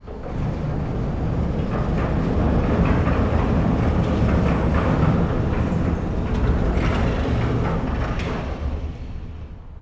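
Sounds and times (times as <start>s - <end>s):
rolling door opening: 0.0s - 9.8s.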